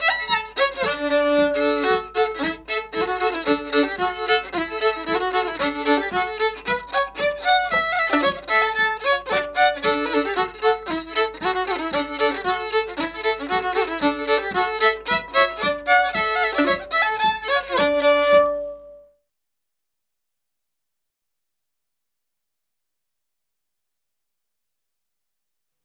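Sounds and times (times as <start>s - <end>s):
polka music: 0.0s - 19.1s.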